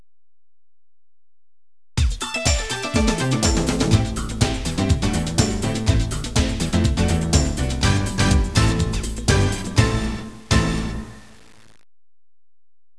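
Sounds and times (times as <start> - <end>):
dance music: 2.0 - 11.3.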